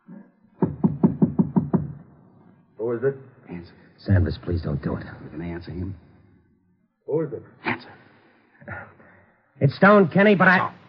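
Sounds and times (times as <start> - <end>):
knocking on the door of a flat: 0.6 - 2.0
speech: 2.8 - 6.0, 7.1 - 8.0, 9.6 - 10.8.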